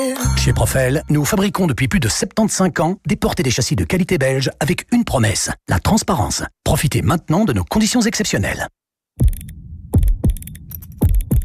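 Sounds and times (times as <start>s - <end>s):
speech: 0.0s - 9.5s
clockmaker's clock mechanism ticking: 9.2s - 11.4s.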